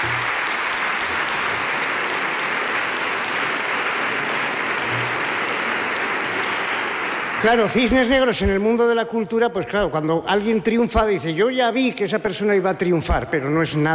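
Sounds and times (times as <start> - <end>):
audience applause: 0.0 - 9.0
speech: 7.4 - 13.9.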